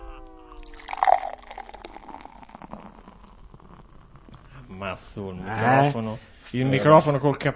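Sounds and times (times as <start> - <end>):
beer pouring into a glass: 0.6 - 4.5
beer foam fizzing and crackling: 0.6 - 5.3
speech: 4.8 - 7.5.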